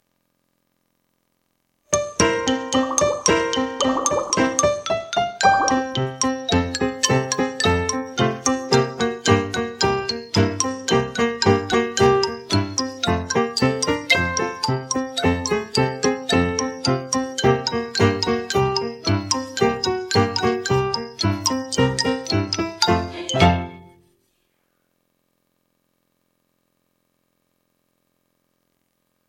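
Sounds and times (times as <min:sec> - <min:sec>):
backing track: 0:01.9 - 0:23.9.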